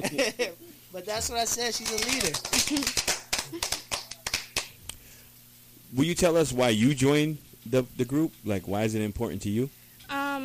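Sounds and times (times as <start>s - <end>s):
speech: 0.1s - 3.8s, 5.9s - 9.8s
small group hand clapping: 1.6s - 5.0s.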